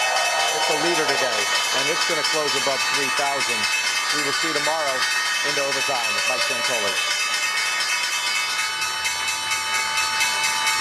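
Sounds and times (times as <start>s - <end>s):
stock exchange closing bell ringing: 0.0s - 10.7s
speech: 0.6s - 7.2s.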